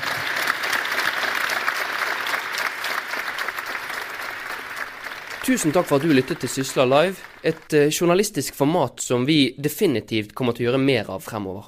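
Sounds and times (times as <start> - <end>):
audience applause: 0.0 - 8.0
speech: 5.5 - 11.6.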